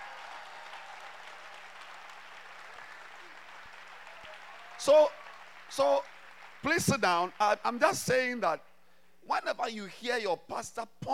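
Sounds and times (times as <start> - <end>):
crowd applause: 0.0 - 7.9
speech: 4.8 - 8.7, 9.3 - 11.1.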